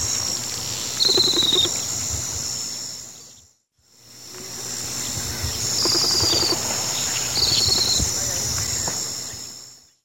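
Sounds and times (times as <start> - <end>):
Ladder-tailed Nightjar calling in the Eastern Lowlands of South America: 0.2 - 2.0, 4.7 - 9.5.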